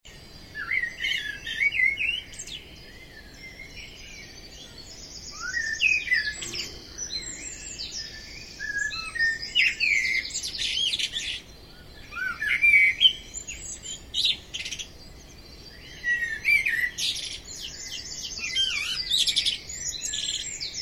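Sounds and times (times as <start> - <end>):
common blackbird singing fluty warbling phrases: 0.1 - 20.7.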